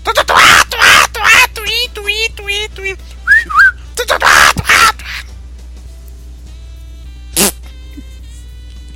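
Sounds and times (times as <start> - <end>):
voice imitating spider monkey mating calls: 0.0 - 2.2, 4.0 - 5.3.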